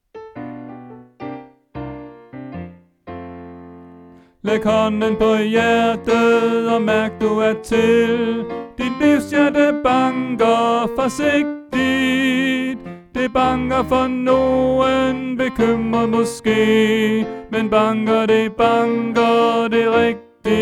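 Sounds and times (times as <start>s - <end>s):
tenor singing: 4.2s - 20.5s.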